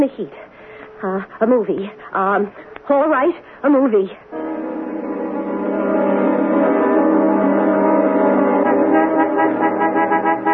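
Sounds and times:
speech: 0.0 - 4.3
car horn honking: 4.3 - 10.5.

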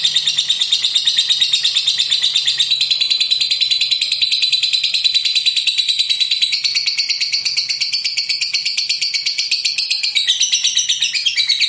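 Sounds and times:
lovebird trilling: 0.0 - 11.6.

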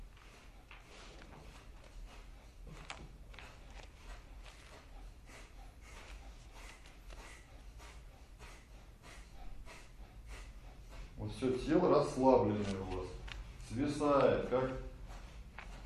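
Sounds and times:
rapid forceful nasal exhales in kapalabhati breathing: 5.2 - 11.2
speech: 11.3 - 13.0, 13.8 - 14.8.

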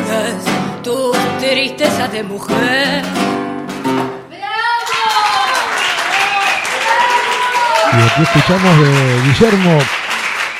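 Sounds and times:
held notes of voice and music in a live song: 0.0 - 3.6
speech: 0.9 - 4.2, 8.0 - 10.0
audience applause in a live concert recording: 4.7 - 10.5.

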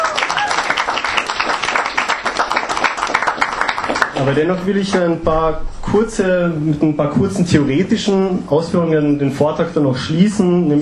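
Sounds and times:
audience applause at a talk on the antifascist movement in Austria: 0.0 - 5.0
speech: 4.2 - 10.8.

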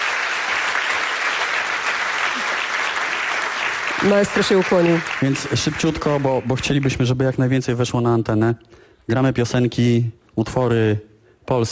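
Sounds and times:
audience applause: 0.0 - 7.0
speech: 4.0 - 11.6.

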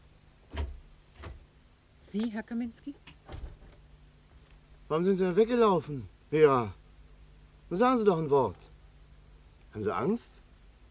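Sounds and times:
door opening with thuds in a classic radio drama: 0.5 - 1.5, 3.1 - 3.8
speech: 2.1 - 3.2, 4.9 - 6.8, 7.7 - 8.6, 9.8 - 10.4.

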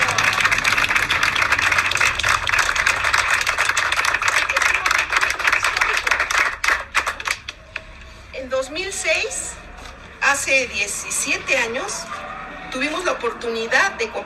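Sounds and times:
audience applause at the opening of an artisan and cultural workshop: 0.0 - 7.6
speech: 10.5 - 14.2.

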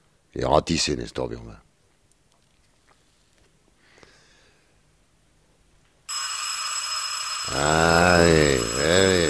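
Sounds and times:
speech: 0.4 - 1.7
telephone bell with bright metallic ring: 6.1 - 9.2
person groaning in a low wavering voice: 7.5 - 9.2.

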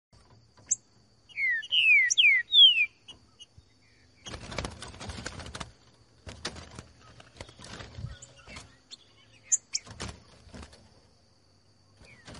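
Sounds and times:
Green-winged Saltator singing downslurred whistled notes in the bush: 1.3 - 3.1.

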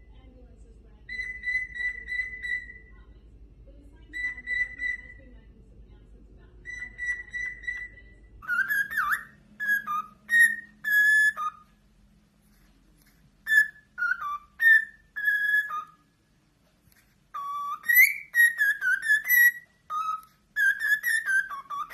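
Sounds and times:
low hum: 0.0 - 11.0
cockatiel whistling: 1.1 - 2.9, 4.1 - 5.2, 6.6 - 11.8, 13.4 - 16.1, 17.3 - 21.9.

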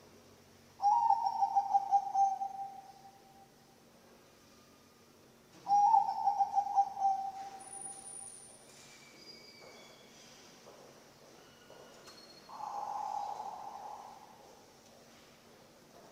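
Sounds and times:
zebra dove cooing song: 0.8 - 3.2, 5.7 - 8.1, 12.5 - 14.6
other birds whistling: 0.8 - 3.3, 5.7 - 10.1, 12.3 - 14.4.

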